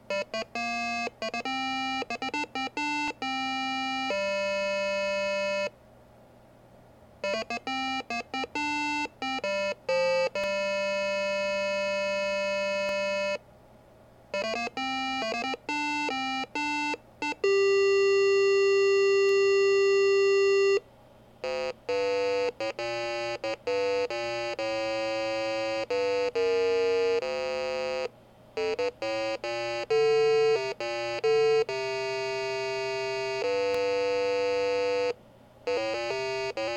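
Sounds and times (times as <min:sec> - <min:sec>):
PC speaker soundcard test intro tones: 0:00.0 - 0:05.7, 0:07.2 - 0:13.4, 0:14.4 - 0:20.8, 0:21.4 - 0:36.7.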